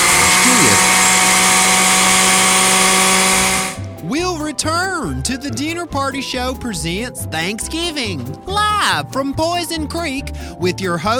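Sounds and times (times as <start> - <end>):
blender running: 0.0 - 3.9
speech: 5.3 - 11.1.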